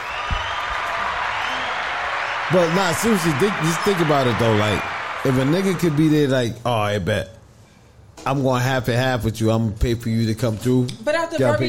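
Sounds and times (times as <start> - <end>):
crowd clapping in a round of applause: 0.0 - 6.4
faint cheer or whoop: 0.0 - 6.4
speech: 2.5 - 7.4, 8.2 - 11.6.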